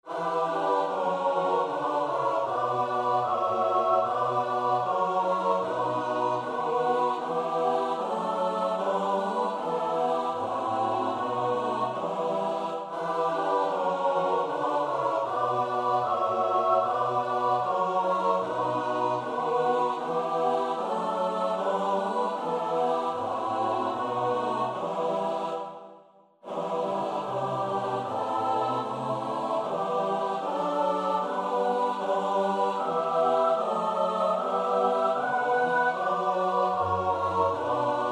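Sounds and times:
soprano alto tenor bass voices: 0:00.1 - 0:25.5, 0:26.5 - 0:38.1.

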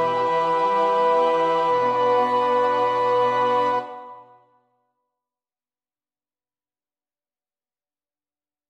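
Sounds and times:
soprano choir part singing in practice: 0:00.0 - 0:04.4.

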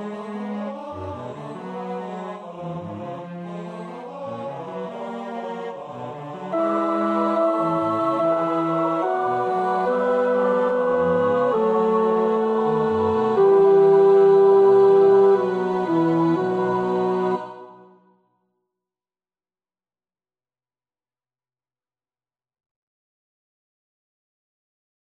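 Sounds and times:
tenor practising a choir part: 0:00.0 - 0:18.0.

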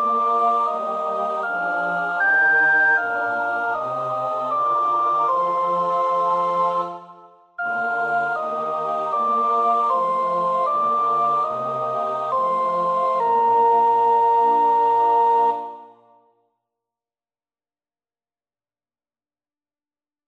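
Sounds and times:
soprano practising a choir part: 0:00.0 - 0:16.1.

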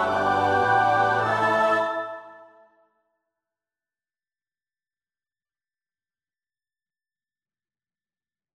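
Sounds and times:
SATB choir part practice: 0:00.0 - 0:02.8.

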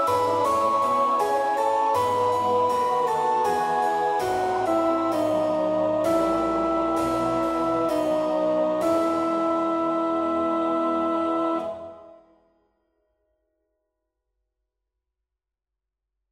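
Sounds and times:
soprano singing: 0:00.0 - 0:12.2.

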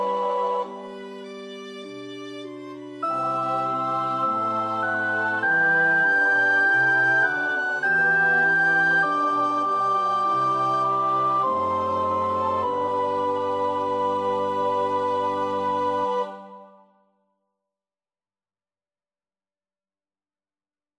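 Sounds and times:
soprano practising a choir part: 0:00.0 - 0:01.5, 0:02.2 - 0:16.9.

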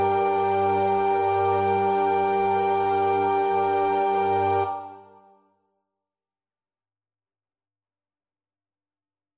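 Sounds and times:
alto choir part practice singing: 0:00.0 - 0:05.2.

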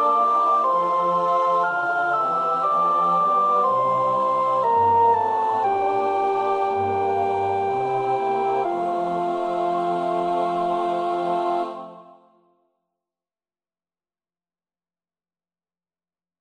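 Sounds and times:
soprano practising a choir part: 0:00.0 - 0:12.4.

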